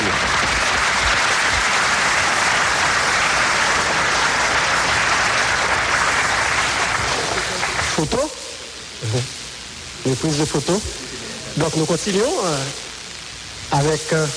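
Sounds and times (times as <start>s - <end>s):
audience applause: 0.0s - 8.2s
speech: 10.0s - 12.8s, 13.7s - 14.3s.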